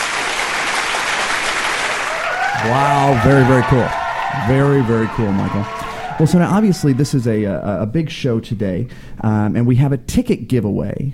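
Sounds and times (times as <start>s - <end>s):
round of applause for performers: 0.0s - 7.6s
speech: 2.6s - 11.1s.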